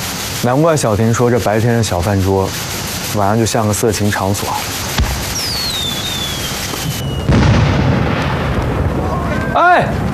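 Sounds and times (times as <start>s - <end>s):
fireworks exploding outdoors: 0.0s - 10.1s
speech: 0.4s - 4.8s
whistling firework rocket: 4.9s - 9.6s.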